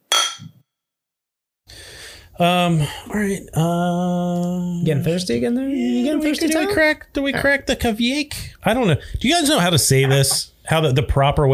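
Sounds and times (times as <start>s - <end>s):
glasses clinking in a toast: 0.1s - 0.5s, 10.0s - 10.5s
speech: 2.4s - 11.5s.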